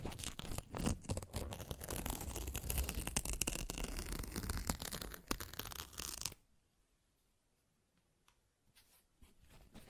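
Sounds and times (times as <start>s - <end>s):
paper ripped and torn: 0.1s - 6.3s.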